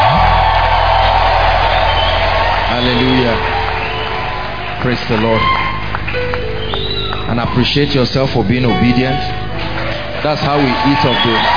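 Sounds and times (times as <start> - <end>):
steady low hum: 0.0 - 7.2
church congregation cheering and whooping: 0.0 - 8.1, 9.6 - 11.5
speech: 4.8 - 5.6, 7.3 - 9.4, 10.2 - 11.5.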